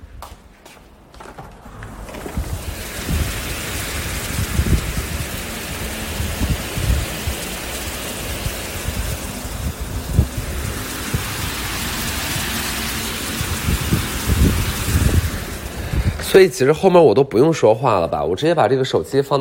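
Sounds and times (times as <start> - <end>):
heavy rain heard through open window: 1.7 - 16.4
speech: 16.4 - 19.3.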